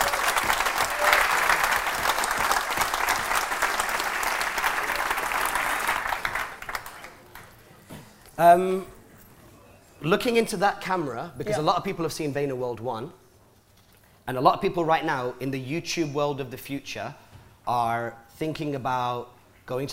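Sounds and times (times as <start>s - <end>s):
audience applause: 0.0s - 7.6s
speech: 8.4s - 8.9s, 10.0s - 13.2s, 14.3s - 19.9s.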